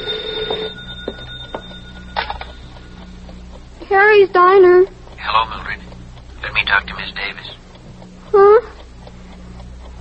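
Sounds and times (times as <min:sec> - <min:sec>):
telephone ringing: 0:00.0 - 0:03.2
speech: 0:03.9 - 0:05.8, 0:06.4 - 0:07.6.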